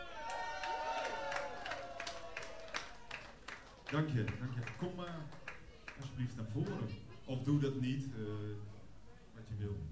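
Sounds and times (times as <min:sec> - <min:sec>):
cheering and whooping voices: 0:00.0 - 0:03.2
audience applause for a band: 0:00.0 - 0:06.0
speech: 0:03.9 - 0:05.4, 0:06.0 - 0:08.8, 0:09.4 - 0:09.9.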